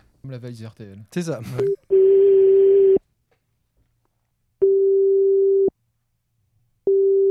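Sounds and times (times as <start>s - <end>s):
speech: 0.2s - 1.9s
telephone ringing tone, double ring: 1.9s - 3.0s, 4.6s - 5.7s, 6.9s - 7.2s.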